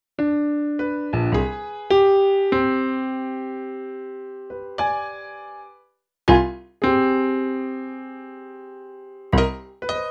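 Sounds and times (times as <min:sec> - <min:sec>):
cinematic funk piano: 0:00.2 - 0:03.5, 0:06.3 - 0:08.5, 0:09.2 - 0:10.0.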